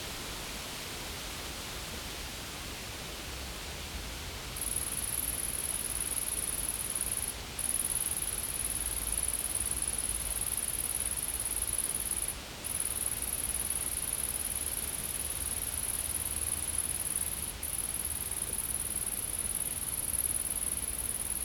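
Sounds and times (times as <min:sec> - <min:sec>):
constant hiss: 0:00.0 - 0:21.4
insect buzzing trill: 0:04.6 - 0:21.4.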